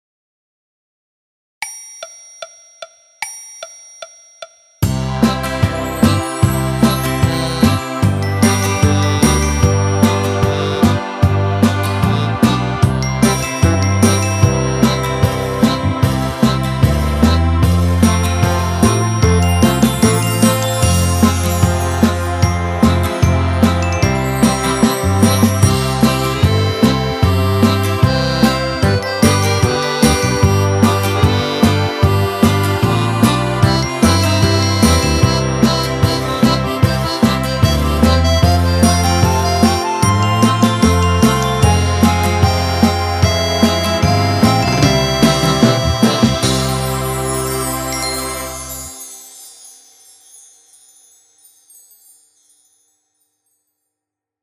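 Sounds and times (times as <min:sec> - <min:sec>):
orchestra playing: 0:04.9 - 0:49.0.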